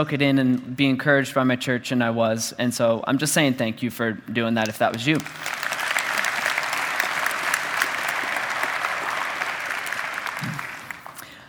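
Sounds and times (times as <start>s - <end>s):
speech: 0.0s - 5.6s
crowd applauding: 4.9s - 11.3s.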